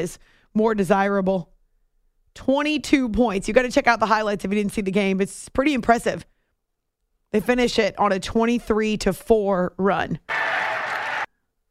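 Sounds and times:
speech: 0:00.0 - 0:01.5, 0:02.4 - 0:06.3, 0:07.3 - 0:10.7
crowd cheering and applause in Phoenix after a game: 0:10.3 - 0:11.3.

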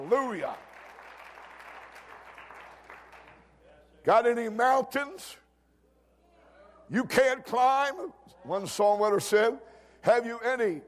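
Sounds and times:
audience clapping: 0:00.0 - 0:03.6
speech: 0:00.1 - 0:00.7, 0:04.0 - 0:05.4, 0:06.9 - 0:10.8.

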